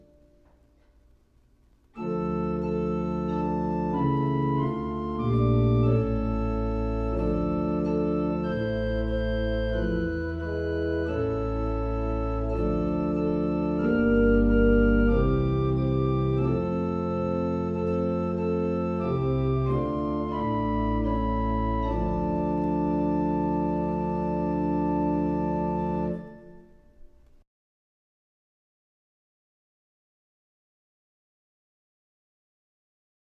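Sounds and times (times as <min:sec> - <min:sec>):
organ playing a hymn: 0:02.0 - 0:27.4.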